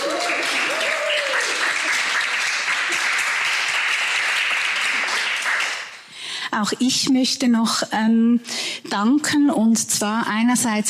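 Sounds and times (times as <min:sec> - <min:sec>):
voices and whoop: 0:00.0 - 0:01.6
crowd applause: 0:00.0 - 0:06.1
speech: 0:06.6 - 0:10.8.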